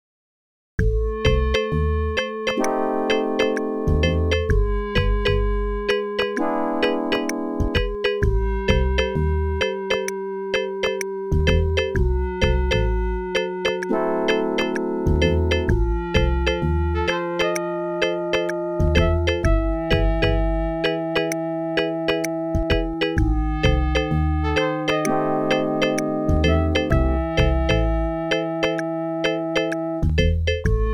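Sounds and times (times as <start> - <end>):
OPL2 FM synth chip music: 0.8 - 30.9.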